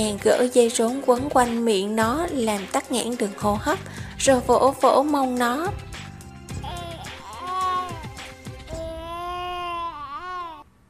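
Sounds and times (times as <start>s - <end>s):
speech: 0.0s - 6.0s
newborn baby girl crying: 6.6s - 10.7s.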